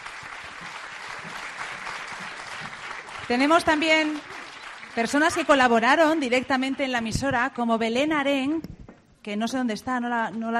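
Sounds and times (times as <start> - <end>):
audience applauding: 0.0 - 7.0
speech: 3.3 - 4.3, 5.0 - 10.5.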